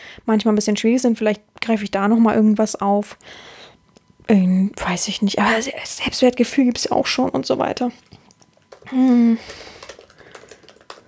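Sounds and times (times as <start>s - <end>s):
speech: 0.2s - 3.6s, 4.3s - 8.2s, 8.9s - 9.7s
keyboard typing: 8.0s - 11.0s.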